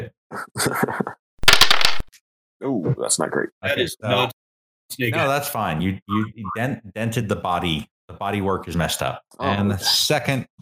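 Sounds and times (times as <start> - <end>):
speech: 0.0 - 1.1, 2.6 - 10.6
two six-sided dice being rolled: 1.4 - 2.1.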